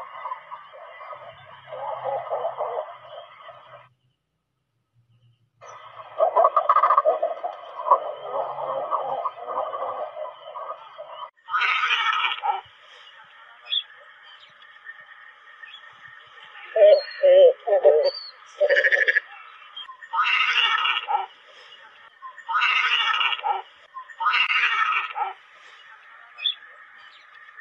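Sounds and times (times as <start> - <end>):
cormorants croaking and squawking: 0.0 - 3.9, 5.6 - 12.7, 16.5 - 21.4, 22.4 - 25.4.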